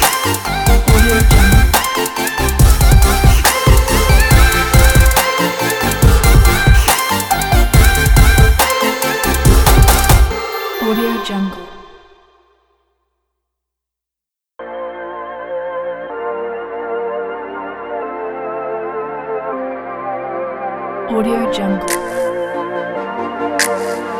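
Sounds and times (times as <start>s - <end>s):
future bass music: 0.0s - 10.7s, 21.8s - 24.1s.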